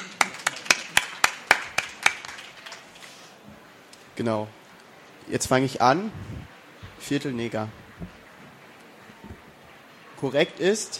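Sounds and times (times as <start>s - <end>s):
sharp claps: 0.0s - 2.9s
speech: 4.2s - 4.6s, 5.2s - 8.2s, 10.2s - 10.9s.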